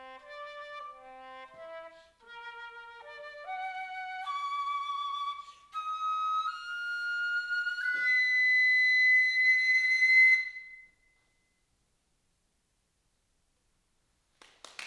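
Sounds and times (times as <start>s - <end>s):
solo flute piece: 0.0s - 11.1s.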